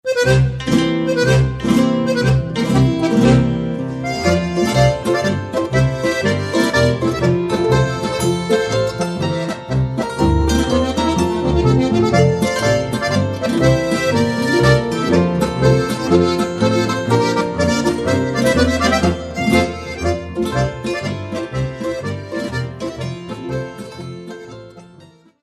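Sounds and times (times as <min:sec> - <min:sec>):
Salzburg zwoaschritt polka: 0:00.0 - 0:25.4.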